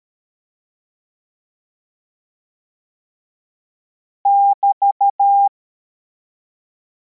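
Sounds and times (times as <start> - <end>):
CW morse code beeps: 4.3 - 5.5.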